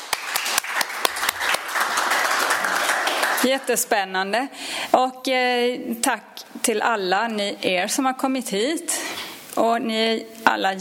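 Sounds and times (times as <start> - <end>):
audience applause: 0.0 - 3.7
speech: 3.4 - 9.0, 9.6 - 10.7.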